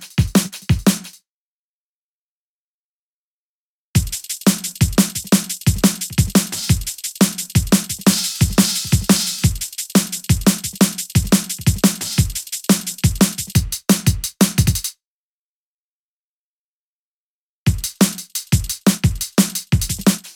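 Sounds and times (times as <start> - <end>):
drum patterns: 0.0 - 1.2, 4.0 - 14.9, 17.7 - 20.3.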